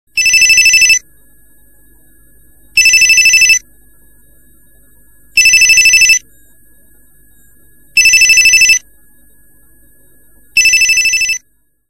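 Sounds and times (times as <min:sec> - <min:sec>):
Panasonic ringtone: 0:00.2 - 0:01.0, 0:02.8 - 0:03.6, 0:05.3 - 0:06.3, 0:07.9 - 0:08.9, 0:10.5 - 0:11.5.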